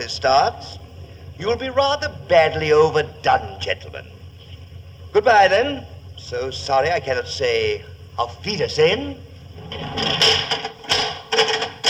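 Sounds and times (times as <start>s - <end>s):
speech: 0.1s - 0.8s, 1.4s - 4.2s, 5.1s - 10.6s
door being bolted shut: 9.8s - 11.8s.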